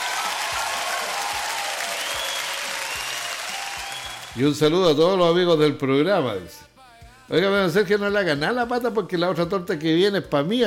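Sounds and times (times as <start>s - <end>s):
crowd applause: 0.0s - 4.5s
speech: 4.4s - 6.7s, 7.3s - 10.6s.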